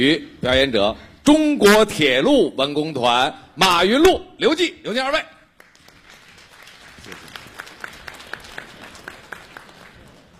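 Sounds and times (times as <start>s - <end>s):
speech: 0.0s - 5.4s
scattered audience applause: 5.6s - 10.3s.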